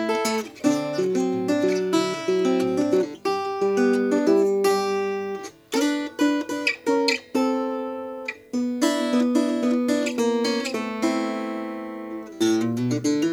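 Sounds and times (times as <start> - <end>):
natural finish archtop guitar: 0.0 - 13.3.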